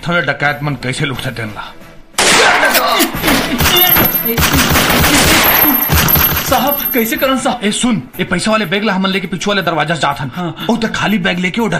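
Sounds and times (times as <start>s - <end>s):
speech: 0.0s - 1.8s, 2.4s - 11.7s
automatic gunfire: 3.6s - 6.8s
high ringing tones: 3.7s - 4.5s, 5.3s - 7.6s.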